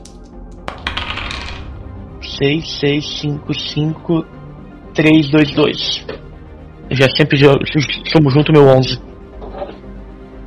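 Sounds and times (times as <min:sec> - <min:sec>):
dice being rolled: 0:00.0 - 0:01.7
speech: 0:02.4 - 0:04.4, 0:05.0 - 0:06.2, 0:06.9 - 0:09.0.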